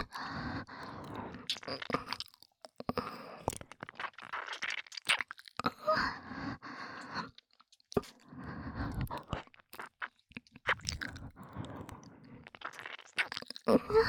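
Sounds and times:
relaxed breathing: 0:00.0 - 0:01.5, 0:05.8 - 0:07.4, 0:08.0 - 0:09.3, 0:11.1 - 0:12.6
ear licking sounds: 0:00.6 - 0:05.8, 0:07.4 - 0:14.0.

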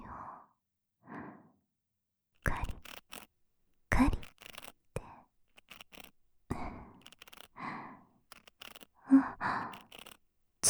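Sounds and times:
soothing ear cleaning: 0:02.4 - 0:03.3, 0:03.9 - 0:07.6, 0:08.3 - 0:08.9, 0:09.7 - 0:10.2.

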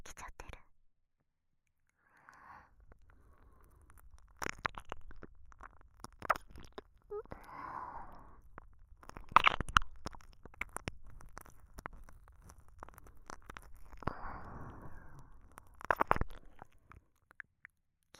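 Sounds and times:
ASMR ear licking sounds: 0:02.8 - 0:17.0.

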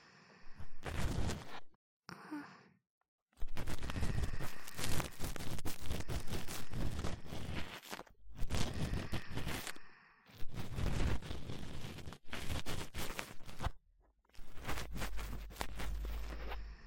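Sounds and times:
cotton swab rubbing in the left channel: 0:03.4 - 0:09.8, 0:10.4 - 0:13.8, 0:14.4 - 0:16.8.

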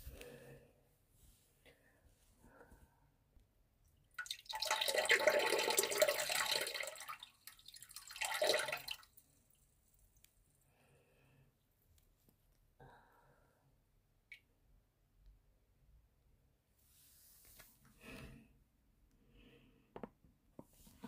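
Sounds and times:
person urinating in a toilet at a friend's house: 0:03.9 - 0:10.3.

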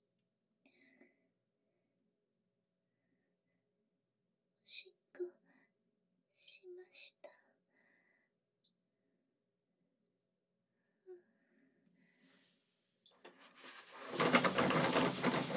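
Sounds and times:
person urinating: 0:13.4 - 0:15.5.

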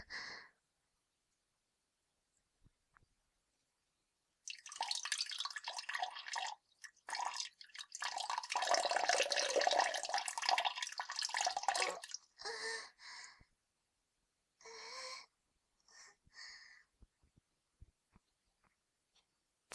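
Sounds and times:
peeing into a toilet: 0:04.5 - 0:12.2.

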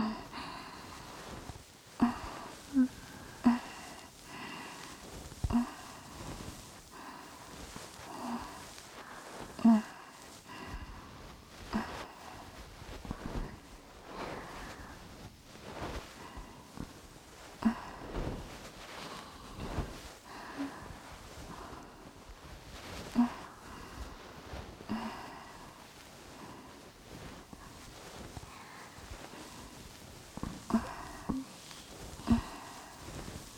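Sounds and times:
cotton swab ear cleaning on both sides: 0:00.2 - 0:33.5.

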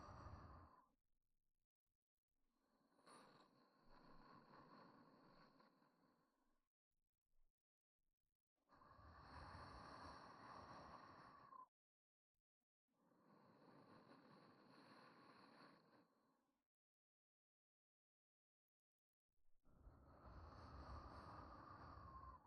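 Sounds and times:
person breathing in sleep: 0:00.0 - 0:00.9, 0:02.8 - 0:06.1, 0:08.7 - 0:11.7, 0:13.1 - 0:16.2, 0:19.8 - 0:22.4.

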